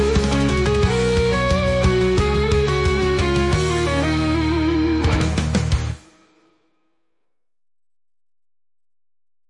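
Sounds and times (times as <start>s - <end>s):
classic rock epic guitar solo jam: 0.0s - 6.0s.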